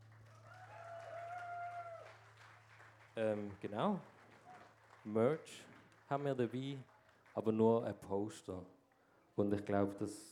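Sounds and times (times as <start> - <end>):
audience applause: 0.0 - 7.5
speech: 3.2 - 4.2, 5.0 - 8.8, 9.4 - 10.3.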